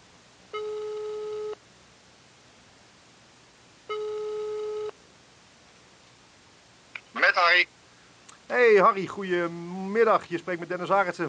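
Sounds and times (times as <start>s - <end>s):
faint hiss: 0.0s - 11.2s
telephone ringing tone while calling: 0.5s - 1.6s, 3.9s - 5.0s
speech: 8.7s - 11.2s.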